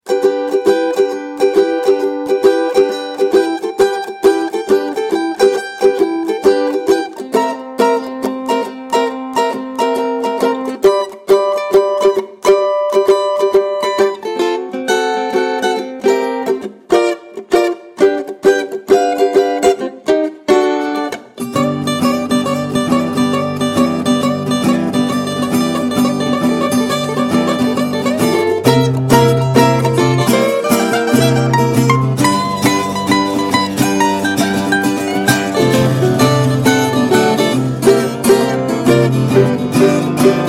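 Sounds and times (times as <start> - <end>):
cavaquinho playing blues: 0.0 - 40.4.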